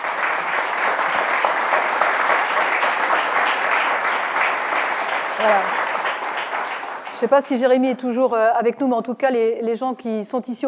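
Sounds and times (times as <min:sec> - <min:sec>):
crowd applauding: 0:00.0 - 0:07.8
speech: 0:05.4 - 0:05.8, 0:07.2 - 0:10.6.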